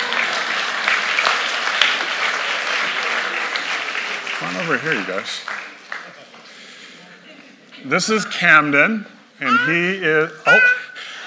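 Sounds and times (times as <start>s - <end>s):
audience clapping: 0.0s - 6.7s
speech: 4.6s - 5.7s, 7.8s - 10.7s.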